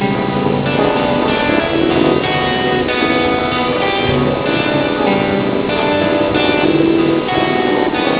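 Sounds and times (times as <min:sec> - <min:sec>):
music: 0:00.0 - 0:08.1.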